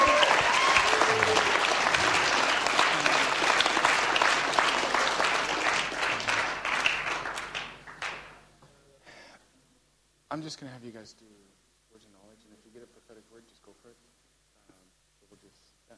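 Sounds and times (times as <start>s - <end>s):
audience applauding: 0.0s - 8.4s
speech: 10.4s - 11.4s.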